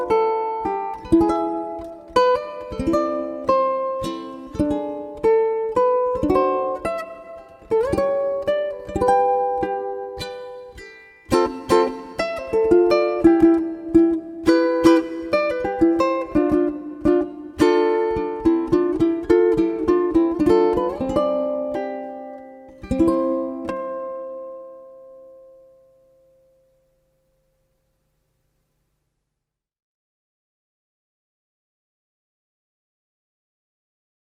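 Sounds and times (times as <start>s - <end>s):
ukulele: 0.0s - 27.0s.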